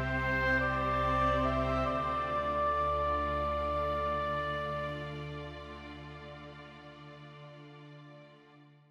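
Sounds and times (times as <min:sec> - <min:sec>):
oboe: 0:00.0 - 0:06.8.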